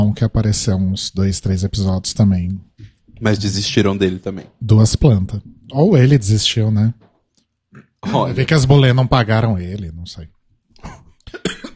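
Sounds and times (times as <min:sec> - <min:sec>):
speech: 0:00.0 - 0:07.0, 0:08.0 - 0:11.5
person coughing after choking: 0:10.8 - 0:11.7.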